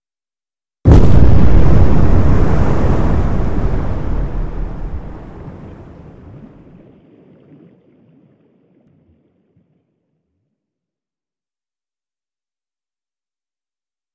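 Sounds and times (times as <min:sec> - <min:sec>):
underwater explosions: 0:00.9 - 0:09.8.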